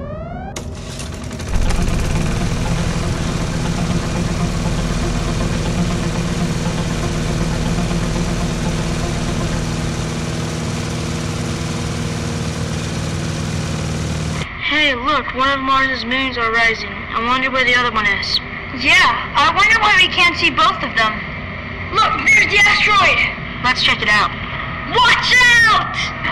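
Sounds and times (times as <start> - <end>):
rising whine: 0.0 - 14.5
space rover engine droning rumble: 0.0 - 14.5
speech: 15.2 - 21.3, 21.9 - 26.2.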